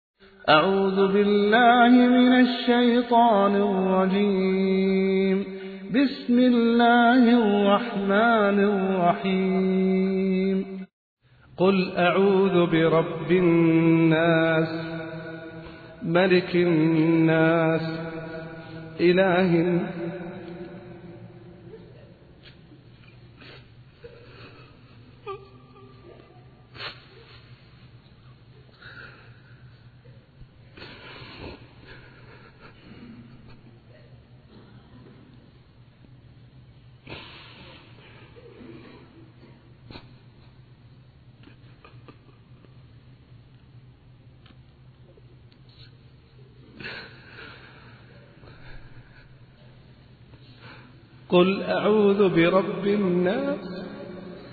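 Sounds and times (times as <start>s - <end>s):
person reciting: 0.3s - 10.9s, 11.5s - 22.7s, 50.6s - 54.5s.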